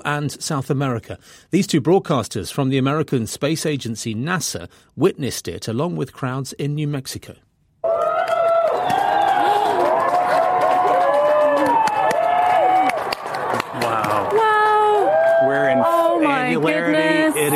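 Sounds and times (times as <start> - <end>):
speech: 0.0 - 8.0, 16.3 - 17.5
crowd cheering at solar eclipse: 7.8 - 17.5.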